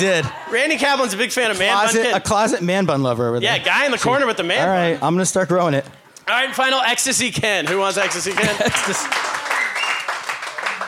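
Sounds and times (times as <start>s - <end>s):
laughter: 0.0s - 2.3s, 8.0s - 9.6s
speech: 0.0s - 9.2s
audience clapping: 7.4s - 10.8s.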